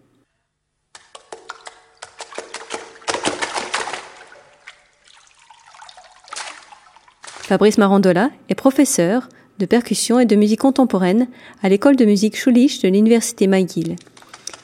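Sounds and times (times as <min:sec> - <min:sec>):
trickling water: 0:01.1 - 0:07.8
speech: 0:07.5 - 0:14.1.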